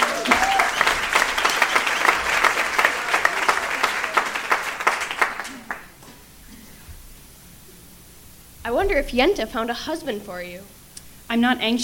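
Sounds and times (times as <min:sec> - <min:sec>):
audience applause: 0:00.0 - 0:06.0
speech: 0:08.9 - 0:11.8.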